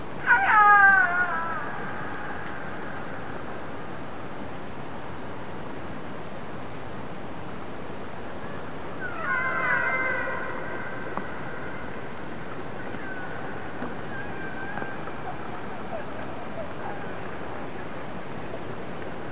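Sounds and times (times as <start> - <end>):
transient orca: 0.1 - 4.0, 8.4 - 19.2.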